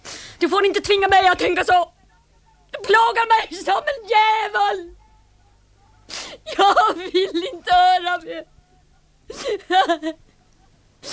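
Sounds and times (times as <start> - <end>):
speech: 0.4 - 1.9, 2.7 - 5.0, 6.5 - 8.5, 9.3 - 10.2
person crying and whimpering: 6.0 - 8.5, 9.3 - 11.1.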